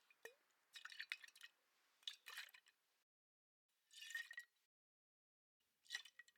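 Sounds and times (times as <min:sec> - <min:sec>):
liquid in a square glass bottle: 0:00.0 - 0:02.8, 0:03.9 - 0:04.6, 0:05.8 - 0:06.3.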